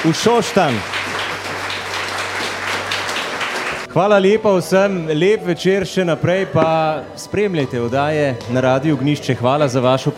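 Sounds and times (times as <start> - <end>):
speech: 0.0 - 1.1, 3.9 - 10.1
audience at an evening event in Šoštanj applauding a guest: 0.0 - 3.9.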